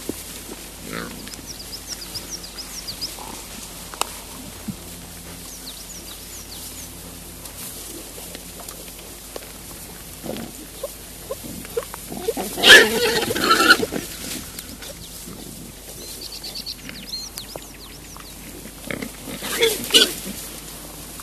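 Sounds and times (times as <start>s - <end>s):
wild boar giving a loud rough grunt: 0.0s - 1.5s, 3.1s - 5.4s, 9.8s - 16.1s, 18.4s - 20.7s.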